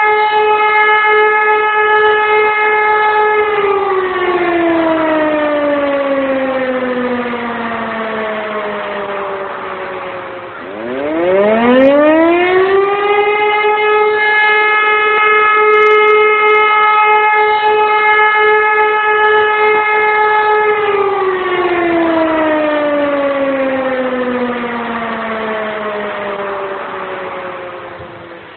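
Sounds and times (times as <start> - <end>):
siren alarm: 0.0 - 28.5.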